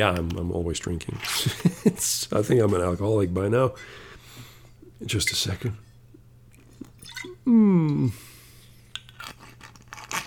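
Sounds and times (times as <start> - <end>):
speech: 0.0 - 4.1, 5.0 - 5.8, 7.0 - 8.3
wine glugging from a bottle: 6.8 - 8.0.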